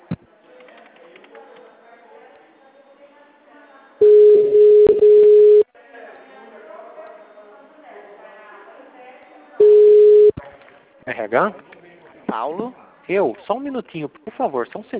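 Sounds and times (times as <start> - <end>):
telephone line tone: 4.0 - 5.7, 9.6 - 10.4
speech: 11.2 - 11.7, 12.3 - 14.9.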